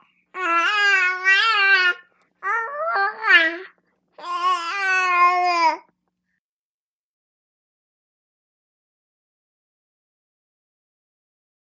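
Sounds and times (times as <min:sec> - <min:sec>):
four-month-old baby girl babbling indoors: 0:00.0 - 0:05.9.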